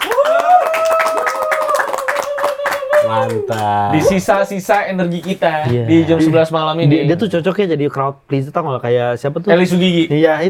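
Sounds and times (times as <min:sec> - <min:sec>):
hand clapping: 0:00.0 - 0:05.4
speech: 0:03.1 - 0:10.4.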